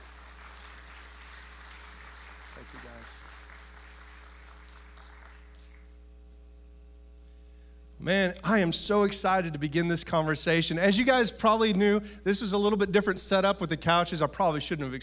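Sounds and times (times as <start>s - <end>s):
audience round of applause: 0.0s - 6.0s
speech: 2.7s - 3.4s, 8.0s - 15.0s.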